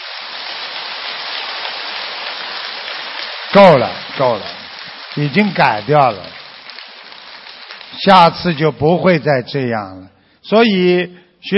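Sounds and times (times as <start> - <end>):
audience applause: 0.0 - 8.7
speech: 3.6 - 4.6, 5.2 - 6.4, 8.0 - 11.5.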